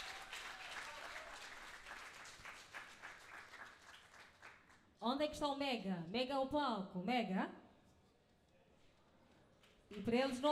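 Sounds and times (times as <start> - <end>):
audience applause for a singer: 0.0 - 4.8
speech: 5.0 - 7.6, 9.9 - 10.5.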